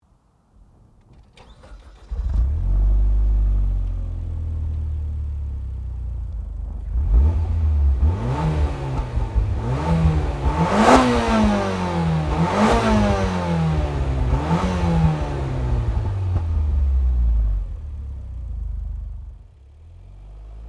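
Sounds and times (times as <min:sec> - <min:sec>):
Mitsubishi Lancer Evo MR engine: 0:00.0 - 0:20.6.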